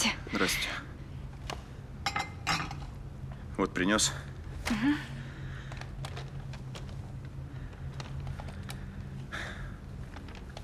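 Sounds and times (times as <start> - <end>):
speech: 0.0 - 0.8, 3.6 - 5.2
low steady hum: 0.0 - 10.6
dishes clinking while a woman wipes them at a table in a living room: 2.0 - 3.0.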